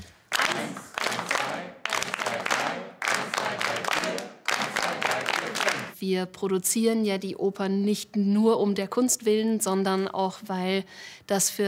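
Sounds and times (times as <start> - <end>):
group clapping in rhythm during a rhythm exercise: 0.0 - 6.0
speech: 6.0 - 11.6.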